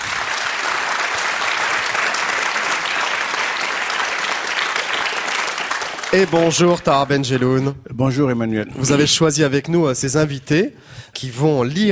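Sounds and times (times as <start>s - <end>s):
audience clapping: 0.0s - 7.6s
speech: 6.1s - 11.9s.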